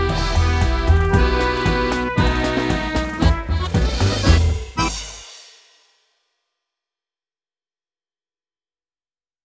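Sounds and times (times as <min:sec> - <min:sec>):
musical accompaniment: 0:00.0 - 0:05.6.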